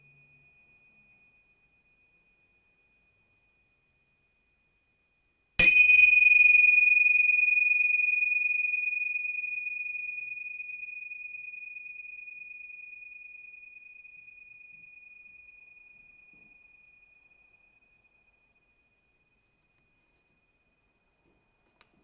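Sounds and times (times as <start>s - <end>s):
cymbals of seven-metal alloy: 5.6s - 9.2s.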